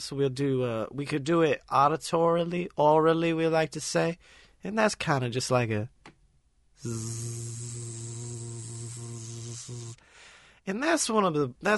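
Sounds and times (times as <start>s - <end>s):
speech: 0.0s - 6.0s, 6.8s - 11.7s
bee buzzing: 6.8s - 10.0s.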